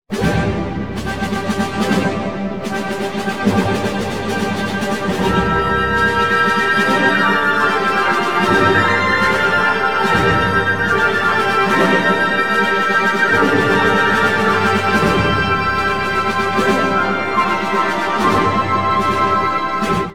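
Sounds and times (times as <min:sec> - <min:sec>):
classical music: 0:00.1 - 0:20.1.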